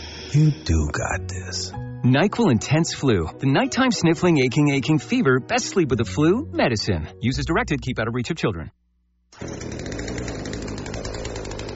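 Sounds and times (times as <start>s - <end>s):
speech: 0.3s - 8.8s
chainsaw running: 9.4s - 11.7s.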